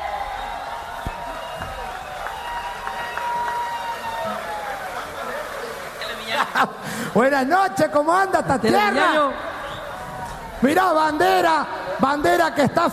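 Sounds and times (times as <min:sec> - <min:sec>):
large crowd applauding and cheering: 0:00.0 - 0:07.2
speech: 0:06.5 - 0:09.5, 0:10.6 - 0:12.9.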